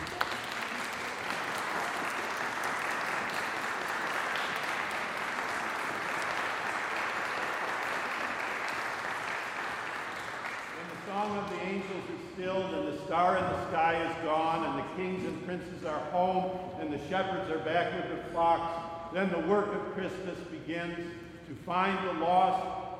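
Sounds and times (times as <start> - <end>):
audience applause: 0.0 - 11.4
speech: 12.0 - 22.8.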